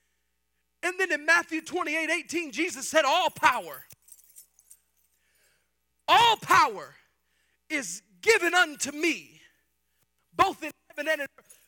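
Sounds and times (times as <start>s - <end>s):
speech: 0.9s - 4.0s, 6.1s - 7.0s, 7.7s - 9.4s, 10.4s - 11.6s
keys jangling: 3.2s - 5.7s, 11.3s - 11.6s.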